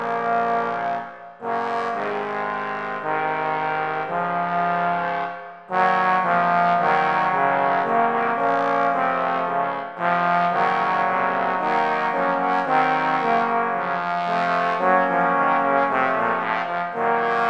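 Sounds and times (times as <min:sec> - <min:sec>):
trombone choir playing an opening: 0:00.0 - 0:17.4.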